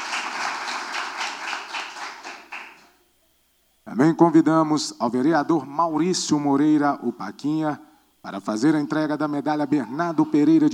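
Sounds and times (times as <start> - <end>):
audience applause: 0.0 - 2.9
speech: 3.9 - 10.7.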